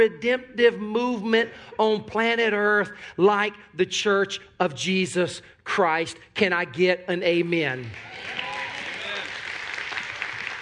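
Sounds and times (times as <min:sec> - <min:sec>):
speech: 0:00.0 - 0:08.5
crowd clapping: 0:07.8 - 0:10.6.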